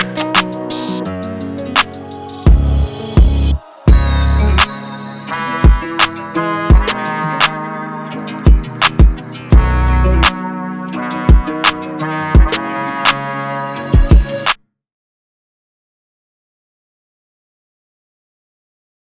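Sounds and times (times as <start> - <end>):
emotional trap beat: 0.0 - 14.5.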